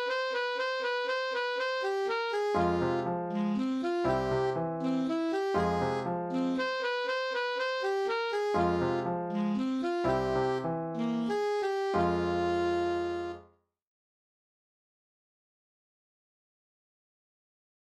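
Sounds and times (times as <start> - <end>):
alto sax playing: 0.0 - 13.5.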